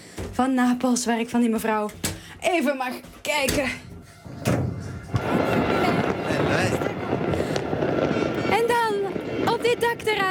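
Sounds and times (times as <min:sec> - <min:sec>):
speech: 0:00.4 - 0:03.9, 0:09.7 - 0:10.2
fireworks banging over Naples as the city celebrates a match: 0:03.3 - 0:10.2
people cheering in Naples: 0:04.2 - 0:10.0
fireworks crackling over Naples: 0:04.2 - 0:10.2.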